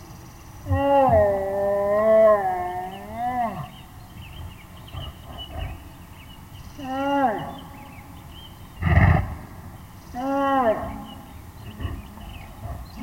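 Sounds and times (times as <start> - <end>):
American black bear moaning: 0.6 - 3.9, 6.7 - 8.2, 8.8 - 13.0.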